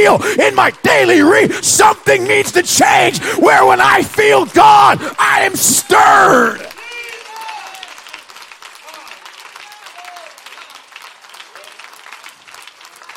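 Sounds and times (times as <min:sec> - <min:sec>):
speech: 0:00.0 - 0:06.8
crowd clapping: 0:03.1 - 0:13.1
faint cheering: 0:03.4 - 0:08.2, 0:08.8 - 0:12.0.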